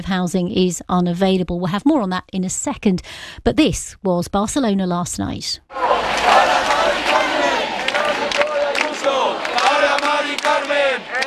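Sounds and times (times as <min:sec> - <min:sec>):
speech: 0:00.0 - 0:06.4
protest crowd chanting in the street: 0:05.7 - 0:11.2.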